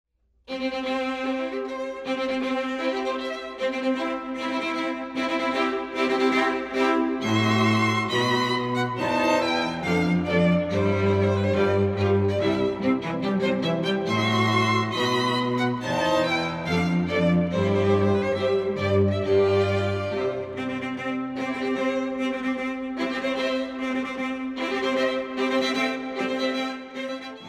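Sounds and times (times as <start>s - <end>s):
divisi strings: 0.5s - 27.4s.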